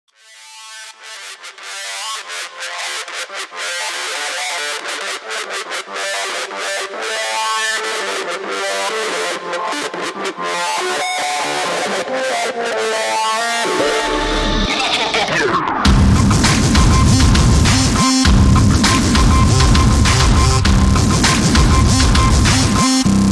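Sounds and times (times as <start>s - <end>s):
funky mix ringtone: 6.5s - 23.2s.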